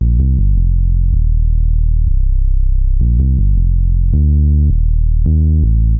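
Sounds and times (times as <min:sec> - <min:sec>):
ambient synth bass: 0:00.0 - 0:05.9.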